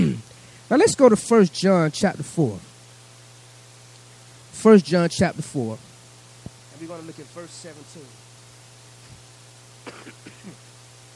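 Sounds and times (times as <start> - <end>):
sneeze: 0.0 - 0.2, 9.8 - 10.6
steady low electrical hum: 0.0 - 11.1
speech: 0.1 - 2.7, 4.6 - 5.9, 6.8 - 8.3.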